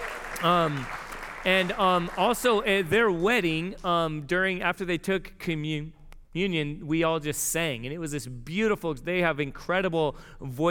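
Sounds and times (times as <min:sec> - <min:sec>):
audience cheering: 0:00.0 - 0:02.7
speech: 0:00.4 - 0:10.6.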